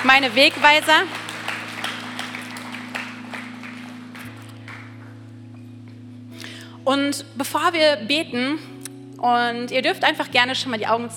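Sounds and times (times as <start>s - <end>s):
speech: 0.0s - 1.2s, 6.9s - 11.1s
audience applause: 0.0s - 5.2s.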